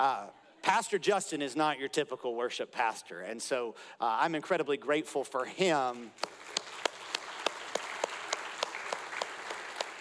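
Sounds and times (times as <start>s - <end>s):
speech: 0.0s - 6.7s
audience clapping in rhythm: 5.7s - 10.0s
scattered applause: 5.9s - 10.0s.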